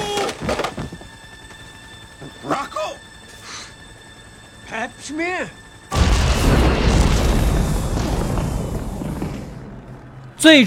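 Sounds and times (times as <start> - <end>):
speech: 5.1 - 5.6, 10.4 - 10.6
bomb exploding in the air: 5.9 - 10.3.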